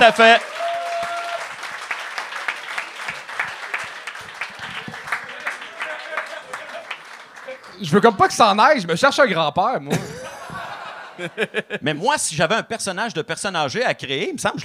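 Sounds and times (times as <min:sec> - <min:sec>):
speech: 0:00.0 - 0:01.1, 0:07.8 - 0:10.2, 0:11.2 - 0:14.6
audience applause: 0:00.0 - 0:08.6
laughter: 0:04.4 - 0:07.7, 0:09.9 - 0:12.3.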